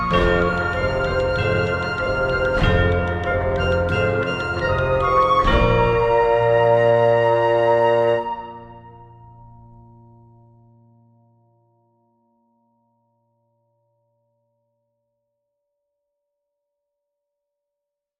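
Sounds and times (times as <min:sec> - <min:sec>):
accordion in medieval style: 0:00.0 - 0:08.4.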